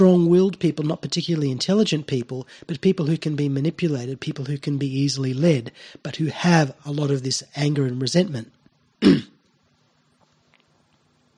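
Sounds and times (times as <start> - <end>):
speech: 0.0 - 9.3
throat clearing: 9.0 - 9.4.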